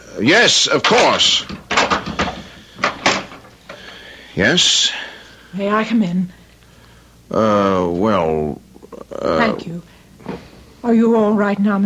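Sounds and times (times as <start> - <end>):
speech: 0.2 - 1.6, 4.4 - 6.4, 7.3 - 9.9, 10.8 - 11.8
door opening: 0.8 - 3.8.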